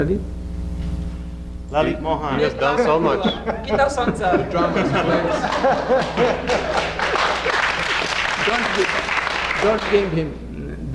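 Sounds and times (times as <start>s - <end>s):
speech: 0.0s - 0.4s, 1.7s - 7.0s, 8.5s - 9.0s, 9.6s - 10.9s
laughter: 2.4s - 10.1s
audience applause: 4.9s - 10.2s.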